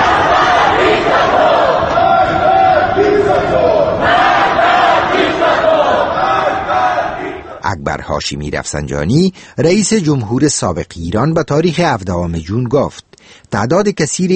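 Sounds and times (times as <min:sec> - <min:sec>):
large crowd shouting and chanting angrily in protest: 0:00.0 - 0:07.6
speech: 0:08.2 - 0:14.3.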